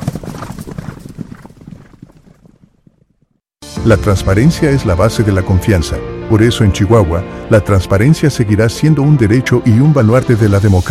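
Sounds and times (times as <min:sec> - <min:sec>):
horse hooves clip-clopping: 0:00.0 - 0:03.4
speech: 0:03.8 - 0:10.8.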